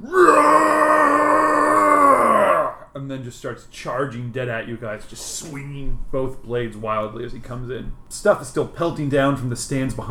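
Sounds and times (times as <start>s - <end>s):
person imitating a Wookiee roar: 0.0s - 2.9s
speech: 3.2s - 10.0s.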